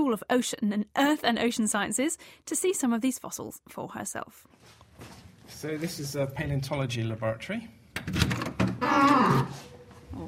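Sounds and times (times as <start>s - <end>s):
speech: 0.1s - 8.4s, 9.0s - 10.2s
squeaky door creaking open: 8.3s - 9.7s.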